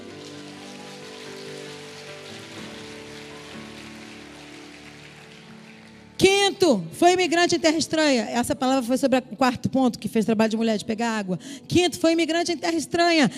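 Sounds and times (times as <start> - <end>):
audience applauding: 0.0 - 6.2
speech: 6.2 - 13.3.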